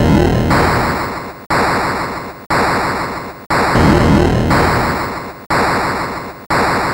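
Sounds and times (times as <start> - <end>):
Atari 2600 noise drums: 0.0 - 1.9, 3.5 - 6.8.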